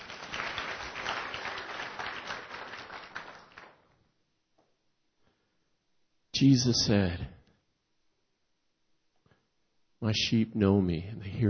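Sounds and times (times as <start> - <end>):
audience applause: 0.0 - 3.8
speech: 6.4 - 7.4, 10.1 - 11.4.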